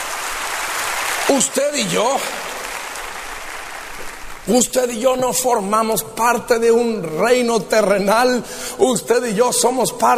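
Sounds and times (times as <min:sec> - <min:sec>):
audience applause: 0:00.0 - 0:04.5
speech: 0:01.3 - 0:02.5, 0:04.5 - 0:10.1.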